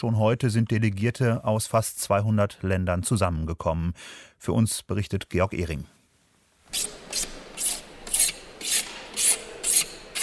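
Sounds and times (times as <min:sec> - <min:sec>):
speech: 0:00.0 - 0:06.0, 0:06.7 - 0:07.3
file rasping in convention halls being prepared in Madrid: 0:06.7 - 0:10.2.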